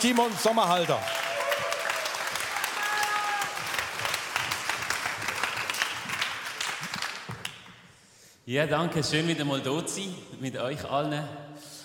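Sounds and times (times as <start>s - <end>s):
speech: 0.0s - 1.3s, 8.5s - 11.4s
audience applause: 0.0s - 7.6s.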